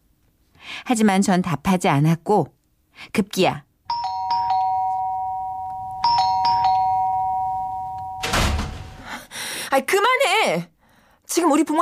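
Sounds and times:
speech: 0.8s - 3.7s, 9.7s - 10.7s, 11.3s - 11.8s
doorbell chiming: 3.9s - 8.5s.

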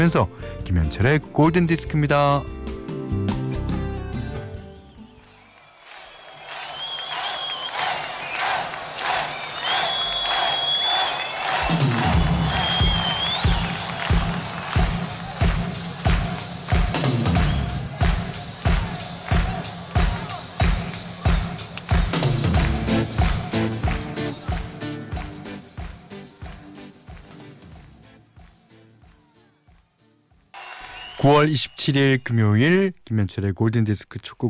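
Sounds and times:
speech: 0.0s - 3.3s, 31.4s - 34.4s
large crowd cheering and clapping: 4.6s - 31.9s.

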